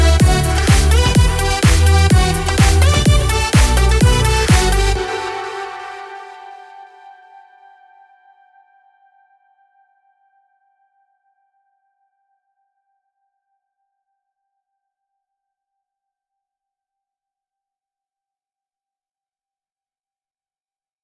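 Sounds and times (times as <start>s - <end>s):
future bounce house music remix: 0.0s - 7.0s.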